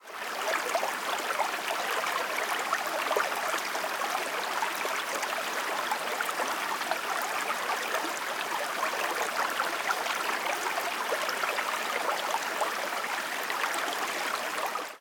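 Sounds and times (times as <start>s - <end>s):
water: 0.0s - 14.9s.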